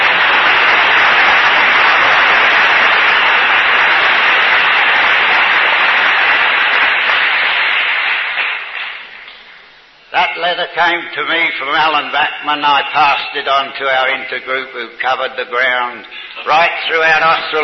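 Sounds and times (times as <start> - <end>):
audience applause: 0.0 - 9.7
speech: 10.4 - 17.6.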